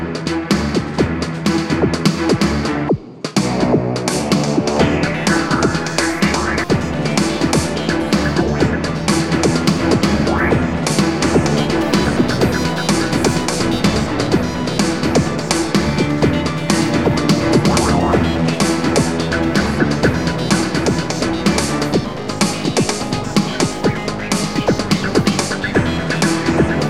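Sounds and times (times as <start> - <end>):
music: 0.0 - 26.8.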